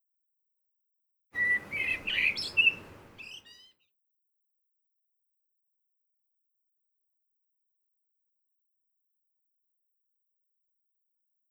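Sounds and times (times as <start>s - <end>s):
birds at Mt. Fuji: 1.4s - 3.7s.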